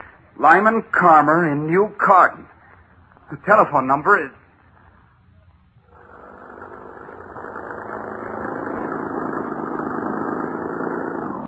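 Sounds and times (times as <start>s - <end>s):
speech: 0.4s - 2.6s, 3.3s - 4.4s
car engine drone on a drive into remote country: 5.8s - 11.4s.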